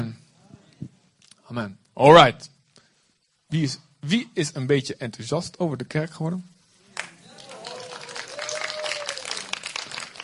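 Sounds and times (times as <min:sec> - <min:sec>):
speech: 0:01.5 - 0:02.5, 0:03.5 - 0:06.5
audience clapping: 0:06.9 - 0:10.2.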